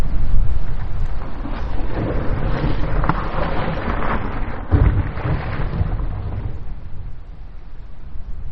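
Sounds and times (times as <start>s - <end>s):
rock slide: 0.1s - 7.3s
deep thump: 4.7s - 6.9s.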